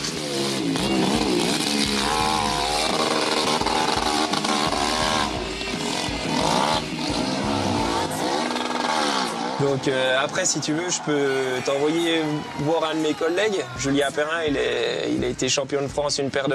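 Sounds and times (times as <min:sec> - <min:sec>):
motorcycle engine revving on hill climb: 0:00.0 - 0:12.6
speech: 0:09.7 - 0:16.5.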